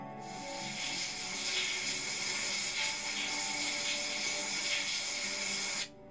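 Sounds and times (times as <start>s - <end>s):
bathroom shower being turned on: 0.2s - 5.9s.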